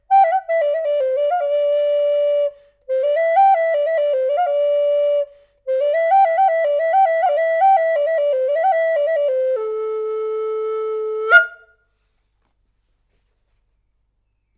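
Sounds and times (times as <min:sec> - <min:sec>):
NAF-style flute tuned to A 440 Hz: 0:00.0 - 0:11.8.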